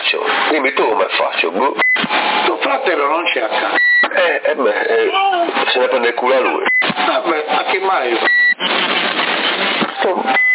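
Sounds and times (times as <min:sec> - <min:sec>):
CB radio static in Sassari: 0:00.0 - 0:10.5
speech: 0:00.5 - 0:10.4
high-pitched electronic beep on the radio channel: 0:10.0 - 0:10.5.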